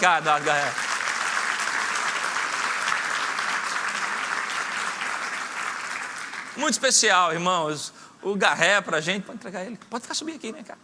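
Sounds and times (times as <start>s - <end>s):
speech: 0.0s - 0.9s, 6.6s - 10.8s
crowd applause: 0.0s - 6.8s.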